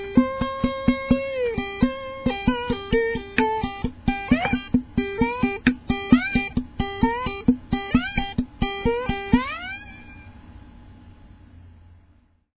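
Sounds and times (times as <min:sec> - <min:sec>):
ukulele single string struck with a stick: 0:00.0 - 0:09.8.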